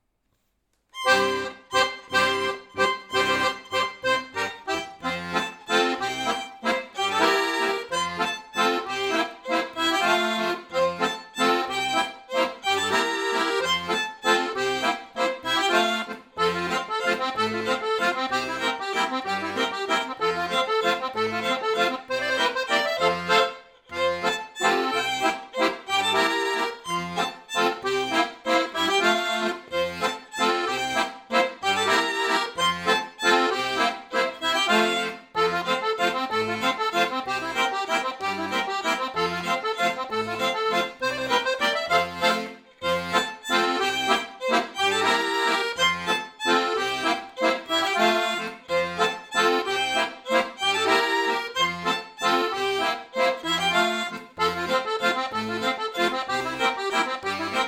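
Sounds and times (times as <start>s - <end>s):
instrumental backing track: 0.2s - 57.6s.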